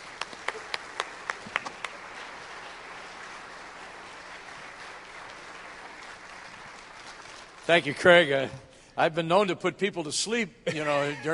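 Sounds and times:
faint audience clapping: 0.0s - 8.4s
speech: 7.7s - 11.3s.

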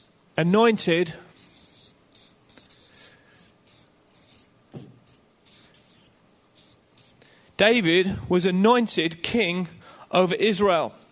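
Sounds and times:
speech: 0.4s - 1.3s, 7.6s - 11.0s
writing a word on a drawing board: 1.3s - 7.2s.

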